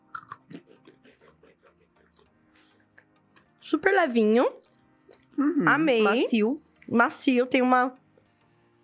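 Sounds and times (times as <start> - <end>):
crunching Italian breadsticks made with olive oil: 0.0 - 0.6
speech: 3.7 - 4.6, 5.4 - 8.0.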